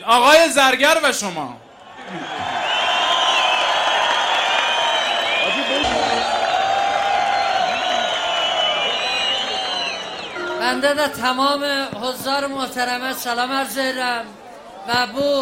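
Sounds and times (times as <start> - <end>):
speech: 0.0 - 2.3, 10.6 - 15.4
audience cheering and applause welcoming a performer: 1.9 - 10.6.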